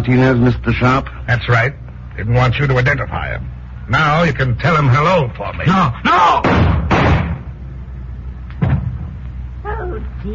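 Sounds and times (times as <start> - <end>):
speech: 0.0 - 6.8
gunshots in a radio drama: 6.4 - 7.5.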